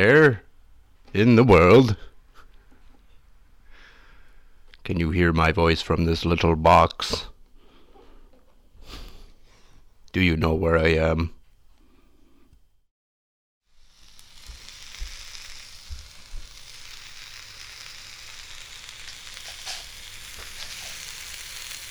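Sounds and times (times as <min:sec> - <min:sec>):
speech: 0:00.0 - 0:00.4, 0:01.1 - 0:02.1, 0:04.8 - 0:07.3, 0:10.1 - 0:11.4
hot dogs frying and sizzling in a pan: 0:13.6 - 0:21.8.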